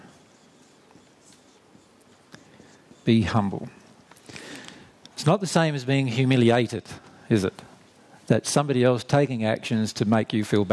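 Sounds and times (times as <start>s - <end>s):
writing tool scratching as something is written by hand: 0.0s - 4.2s
speech: 3.1s - 3.8s, 5.2s - 7.6s, 8.3s - 10.7s.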